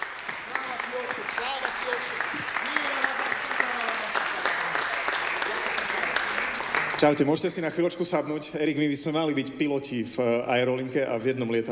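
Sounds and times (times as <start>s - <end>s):
audience applauding: 0.0s - 7.3s
speech: 7.0s - 11.6s.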